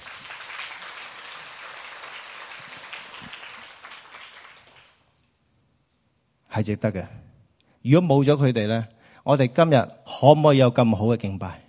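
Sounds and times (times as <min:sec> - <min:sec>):
audience applause: 0:00.0 - 0:05.0
speech: 0:06.6 - 0:11.6.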